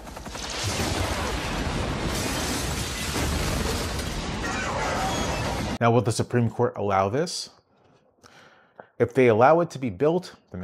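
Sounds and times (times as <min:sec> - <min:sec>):
crackling debris: 0:00.0 - 0:05.8
explosion from a movie clip: 0:00.4 - 0:05.8
speech: 0:05.8 - 0:07.6, 0:09.0 - 0:10.6.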